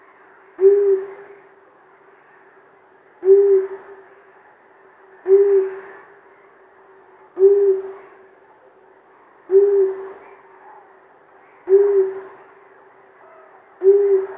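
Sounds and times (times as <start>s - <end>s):
male long-eared owl calling a deep short hoot: 0.6s - 1.4s, 3.2s - 4.0s, 5.3s - 6.1s, 7.4s - 8.2s, 9.5s - 11.0s, 11.6s - 12.4s, 13.2s - 14.3s.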